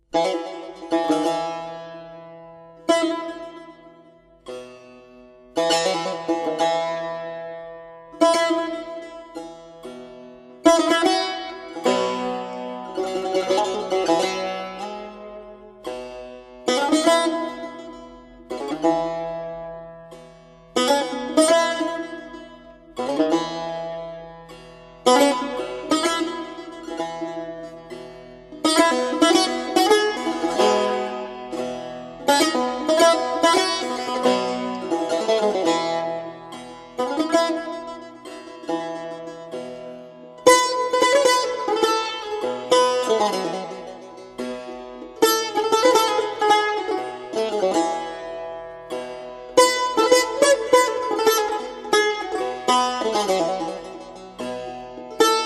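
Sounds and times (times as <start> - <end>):
saz: 0.0 - 55.4.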